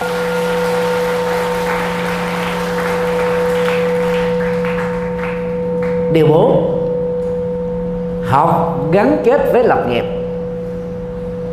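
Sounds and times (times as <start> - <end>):
crowd applauding loudly: 0.0 - 6.1
constant electrical hum: 0.0 - 11.5
speech: 6.1 - 6.7, 8.3 - 10.2.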